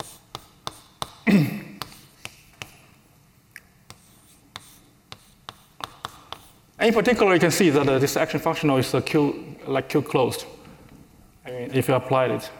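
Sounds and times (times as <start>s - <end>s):
writing on a board during a mathematical physics lecture: 0.0s - 1.2s, 1.8s - 2.8s, 3.9s - 6.7s
speech: 1.3s - 1.6s, 6.8s - 10.6s, 11.7s - 12.5s.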